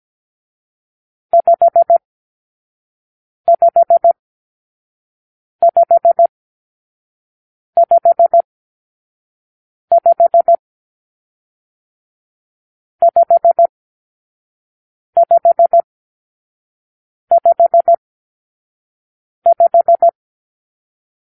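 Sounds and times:
morse code for numeral five: 1.4s - 2.0s, 3.5s - 4.2s, 5.6s - 6.3s, 7.8s - 8.4s, 9.9s - 10.6s, 13.0s - 13.7s, 15.2s - 15.8s, 17.3s - 18.0s, 19.5s - 20.2s.

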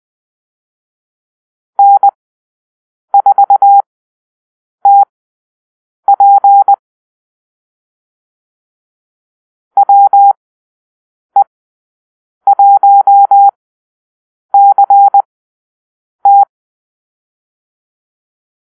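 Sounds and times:
morse code call-sign beeps: 1.8s - 2.1s, 3.2s - 3.8s, 6.1s - 6.8s, 9.8s - 10.4s, 12.5s - 13.5s, 14.6s - 15.3s, 16.3s - 16.5s.

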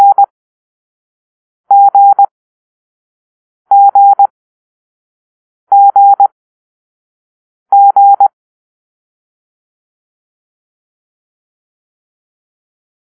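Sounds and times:
morse code letter G tones: 0.0s - 0.2s, 1.7s - 2.3s, 3.7s - 4.3s, 5.7s - 6.3s.

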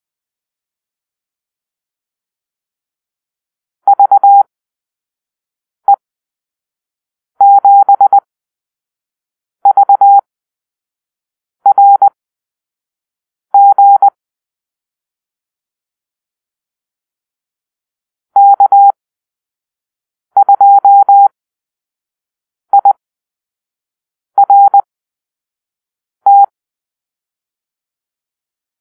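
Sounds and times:
morse code beeps in a call-sign drill: 3.9s - 4.5s, 7.4s - 8.3s, 9.6s - 10.2s, 11.7s - 12.2s, 13.6s - 14.2s, 18.4s - 19.0s, 20.4s - 21.3s, 22.7s - 23.0s, 24.4s - 24.9s, 26.3s - 26.5s.

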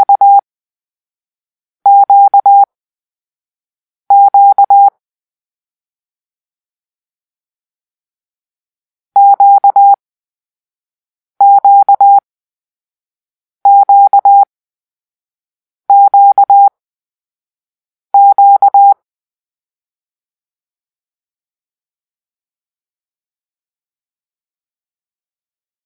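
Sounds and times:
morse code for the letter Q: 0.0s - 0.4s, 1.9s - 2.7s, 4.1s - 4.9s, 9.2s - 10.0s, 11.4s - 12.2s, 13.7s - 14.5s, 15.9s - 16.7s, 18.2s - 19.0s.

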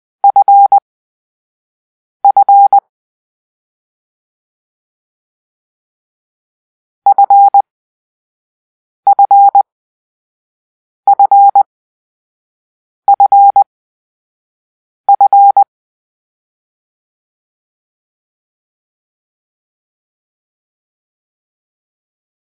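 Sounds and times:
morse code for the letter F: 0.2s - 0.8s, 2.2s - 2.8s, 7.1s - 7.6s, 9.1s - 9.6s, 11.1s - 11.7s, 13.1s - 13.6s, 15.1s - 15.7s.

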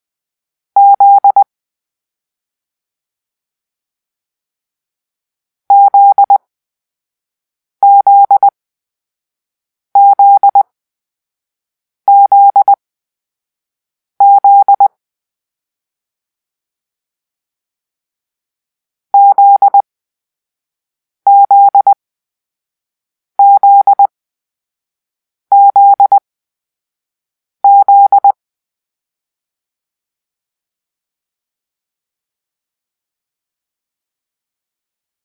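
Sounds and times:
morse code for the letter Z: 0.8s - 1.5s, 5.7s - 6.4s, 7.8s - 8.5s, 10.0s - 10.6s, 12.1s - 12.8s, 14.2s - 14.9s, 19.2s - 19.8s, 21.3s - 22.0s, 23.4s - 24.1s, 25.5s - 26.2s, 27.6s - 28.4s.

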